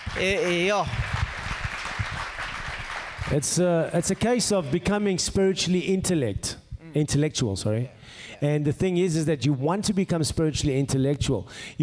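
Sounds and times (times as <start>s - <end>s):
audience applause: 0.0s - 4.3s
speech: 0.2s - 1.1s, 3.3s - 11.8s.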